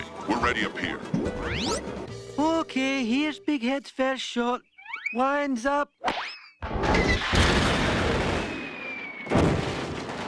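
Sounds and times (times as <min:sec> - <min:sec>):
speech: 0:00.3 - 0:06.3
comedic explosion of a piano blowing up a golf ball: 0:06.8 - 0:10.2.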